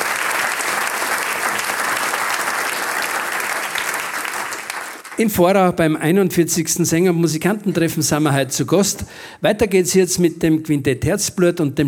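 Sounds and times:
audience applause: 0:00.0 - 0:05.2
speech: 0:05.2 - 0:11.8.

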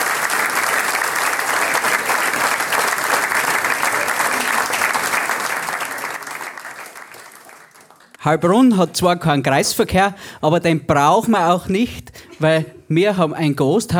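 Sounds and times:
audience applause after a rhymed folk song performance: 0:00.0 - 0:08.2
speech: 0:08.2 - 0:13.9.

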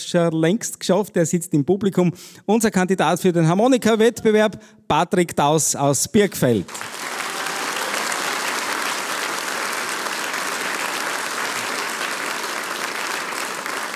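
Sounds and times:
speech: 0:00.1 - 0:07.0
audience applause: 0:06.7 - 0:13.9.

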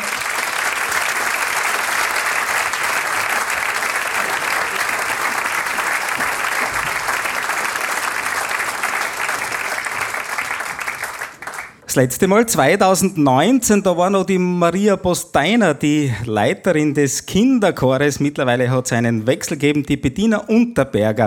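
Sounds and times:
audience applause: 0:00.0 - 0:11.9
speech: 0:11.9 - 0:21.2.

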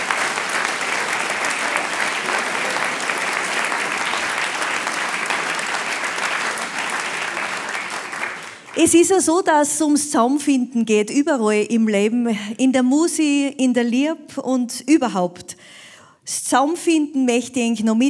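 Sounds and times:
audience applause: 0:00.0 - 0:08.9
speech: 0:08.8 - 0:18.0.

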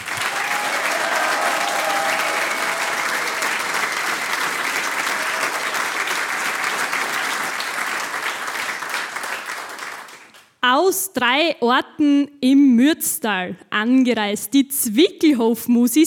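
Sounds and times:
audience applause: 0:00.0 - 0:10.4
speech: 0:10.9 - 0:16.0.

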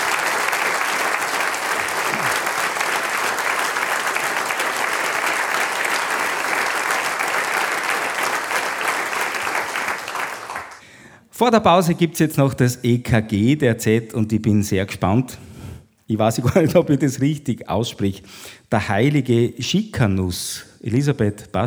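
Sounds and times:
audience applause: 0:00.0 - 0:10.8
speech: 0:11.4 - 0:15.5, 0:16.1 - 0:21.6.

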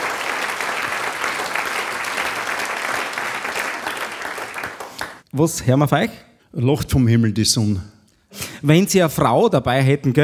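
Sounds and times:
audience applause: 0:00.0 - 0:05.2
speech: 0:05.3 - 0:10.2.

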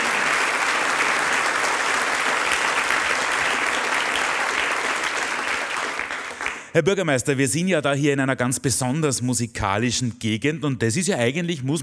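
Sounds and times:
audience applause: 0:00.0 - 0:06.7
speech: 0:06.8 - 0:11.8.

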